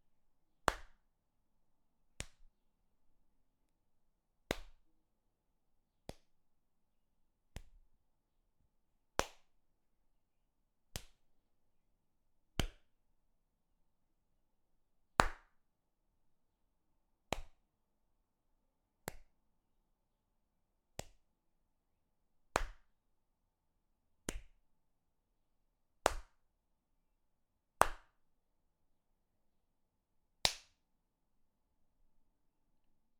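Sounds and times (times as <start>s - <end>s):
slaps: 0.7s - 1.0s, 2.2s - 2.5s, 4.5s - 4.8s, 6.1s - 6.3s, 7.5s - 7.8s, 9.2s - 9.5s, 10.9s - 11.2s, 12.6s - 12.9s, 15.2s - 15.5s, 17.3s - 17.6s, 19.0s - 19.3s, 21.0s - 21.2s, 22.5s - 22.9s, 24.3s - 24.6s, 26.0s - 26.4s, 27.8s - 28.2s, 30.4s - 30.8s.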